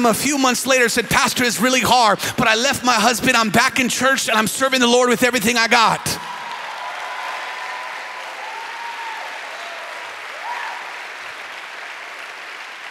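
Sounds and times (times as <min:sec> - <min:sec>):
speech: 0:00.0 - 0:06.3
audience applause: 0:06.2 - 0:12.8
faint voice or cheer: 0:06.2 - 0:12.8.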